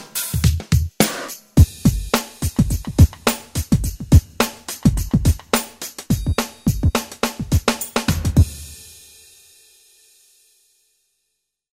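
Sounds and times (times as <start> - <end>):
pop drums: 0.0 - 9.2.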